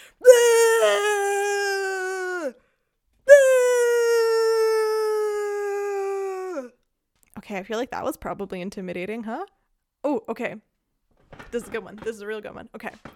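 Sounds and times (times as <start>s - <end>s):
person imitating weird eerie screaming: 0.0s - 2.6s, 3.3s - 6.7s
speech: 7.5s - 10.7s, 11.5s - 13.1s.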